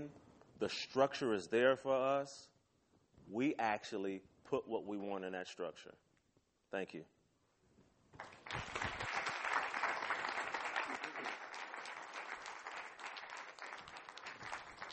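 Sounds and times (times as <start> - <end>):
speech: 0.0 - 2.5, 3.3 - 6.0, 6.7 - 7.2
crowd applauding: 8.2 - 14.9.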